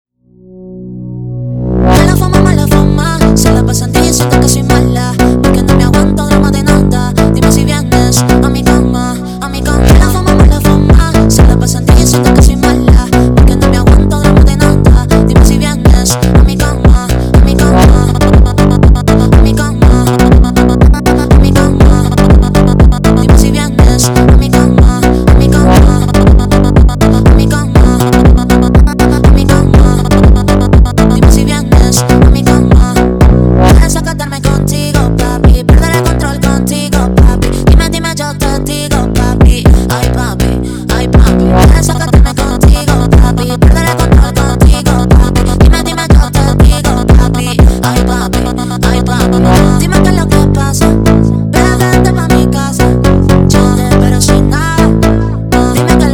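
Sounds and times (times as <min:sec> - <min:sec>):
phonk music: 0:01.8 - 0:56.1.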